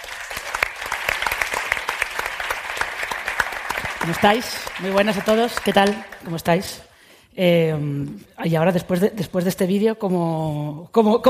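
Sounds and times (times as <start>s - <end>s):
audience applause: 0.0s - 6.4s
speech: 4.0s - 11.2s.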